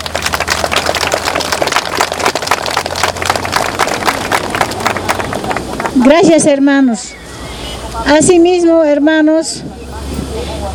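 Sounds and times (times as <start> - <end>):
audience applause: 0.0 - 6.2
speech: 6.0 - 7.2, 8.0 - 9.8.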